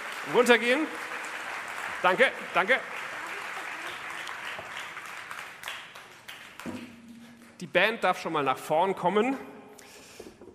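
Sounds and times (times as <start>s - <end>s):
audience applause: 0.0s - 6.9s
speech: 0.2s - 1.2s, 2.0s - 3.0s, 7.6s - 9.5s.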